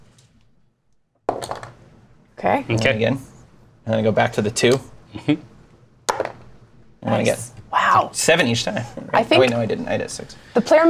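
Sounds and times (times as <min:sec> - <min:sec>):
dice being rolled: 0:01.3 - 0:01.8, 0:06.1 - 0:06.4
speech: 0:02.4 - 0:03.3, 0:03.9 - 0:05.5, 0:07.0 - 0:10.8.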